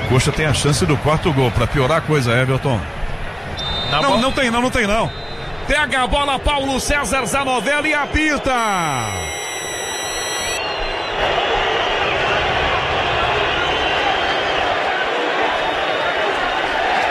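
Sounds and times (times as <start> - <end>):
huge stadium crowd booing: 0.0 - 17.0
speech: 0.1 - 3.0, 3.9 - 9.2
thin high-pitched tones: 8.9 - 10.8.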